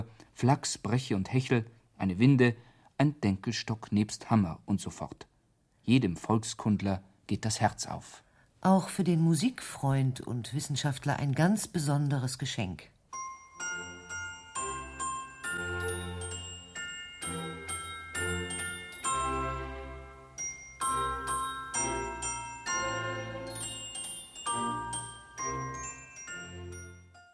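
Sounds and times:
speech: 0.0s - 12.9s
glockenspiel playing a lively melody: 13.1s - 27.3s.

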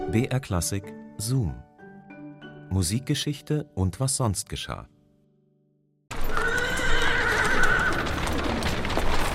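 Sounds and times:
speech: 0.1s - 1.7s, 2.7s - 5.0s
carriage wheels rumbling on cobblestones: 6.1s - 9.3s
horse hooves on cobblestones: 6.1s - 9.3s
horse whinny: 6.2s - 8.3s.

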